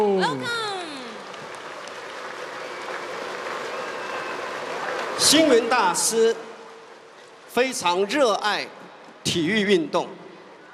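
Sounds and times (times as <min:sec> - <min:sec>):
warm applause from an audience: 0:01.1 - 0:07.1
speech: 0:05.2 - 0:06.4, 0:07.6 - 0:10.2.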